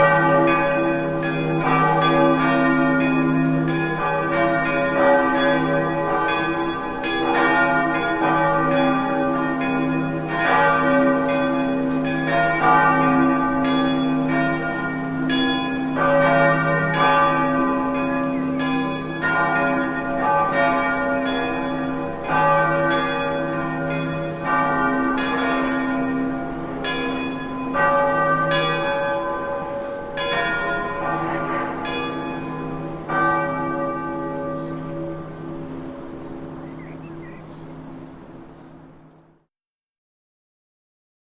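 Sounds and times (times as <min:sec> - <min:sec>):
cathedral bells ringing in bell towers: 0:00.0 - 0:39.3.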